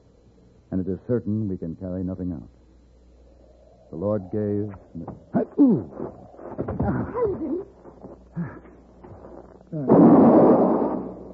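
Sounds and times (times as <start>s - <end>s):
speech: 0.8s - 2.6s, 3.9s - 7.8s, 9.7s - 10.6s
rifle shot: 9.9s - 11.3s.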